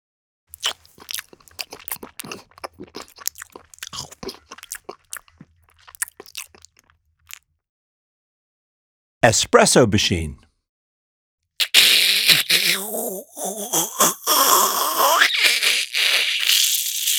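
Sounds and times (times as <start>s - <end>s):
man eating scrambled egg: 0.5s - 7.4s, 11.6s - 17.1s
speech: 9.2s - 10.5s.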